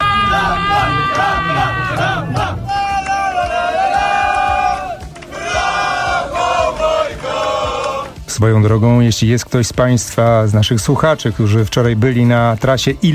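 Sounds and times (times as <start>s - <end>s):
large crowd of cycling fans cheering and shouting: 0.0s - 8.2s
speech: 8.4s - 13.1s.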